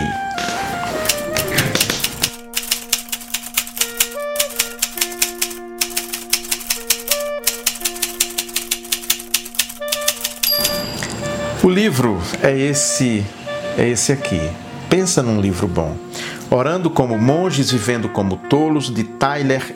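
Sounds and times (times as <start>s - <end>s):
typewriter-like clacking: 1.0s - 10.9s
held higher notes: 10.4s - 12.2s
speech: 11.8s - 19.7s.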